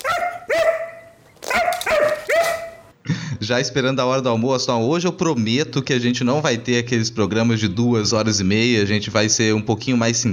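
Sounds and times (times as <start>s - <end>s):
dog barking: 0.0s - 2.9s
speech: 3.5s - 10.3s.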